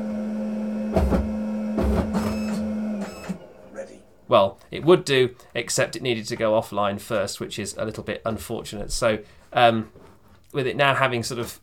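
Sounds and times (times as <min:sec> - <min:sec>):
braille embosser paper feed whirring and clattering: 0:00.0 - 0:03.6
speech: 0:00.9 - 0:01.3, 0:04.3 - 0:11.6.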